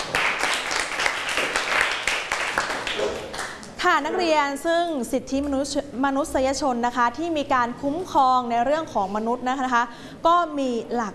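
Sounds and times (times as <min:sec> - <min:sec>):
students clapping: 0:00.0 - 0:03.8
speech: 0:03.9 - 0:11.1.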